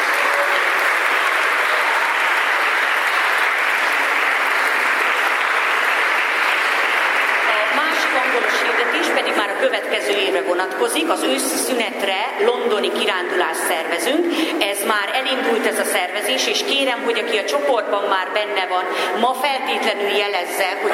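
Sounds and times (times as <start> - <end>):
applause: 0.0 - 9.8
speech: 10.0 - 20.9.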